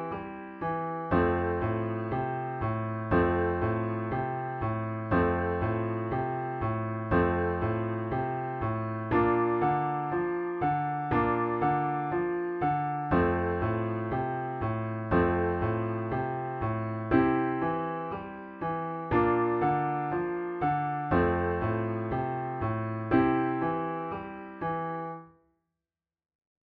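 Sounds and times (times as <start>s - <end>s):
triad blues chords in F on piano: 0.0s - 25.2s.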